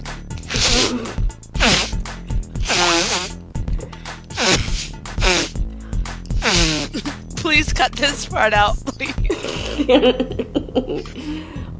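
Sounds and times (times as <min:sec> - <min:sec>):
woman blowing her nose loudly: 0:00.5 - 0:03.4, 0:04.3 - 0:05.6, 0:06.3 - 0:07.2
speech: 0:07.8 - 0:11.2
laughter: 0:09.0 - 0:11.4.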